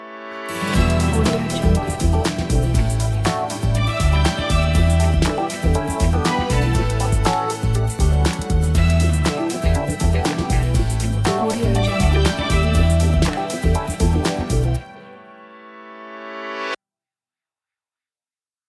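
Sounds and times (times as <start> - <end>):
energetic funky drum kit: 0.5 - 14.9.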